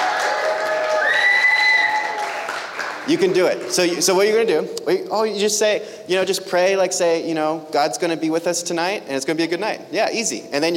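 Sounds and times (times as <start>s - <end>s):
audience applause: 0.0s - 3.9s
speech: 3.1s - 10.7s.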